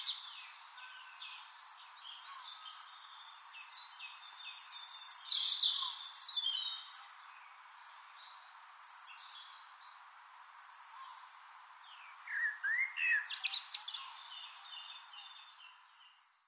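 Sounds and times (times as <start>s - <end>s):
Eurasian blackbird singing: 0.0s - 7.0s, 12.0s - 16.3s.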